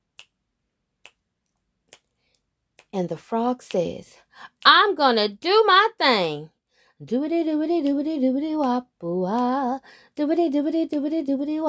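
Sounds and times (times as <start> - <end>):
finger snapping: 0.1 - 0.4, 1.0 - 1.2, 1.9 - 2.2, 7.8 - 8.0, 8.6 - 9.6, 10.2 - 11.6
speech: 2.9 - 11.6.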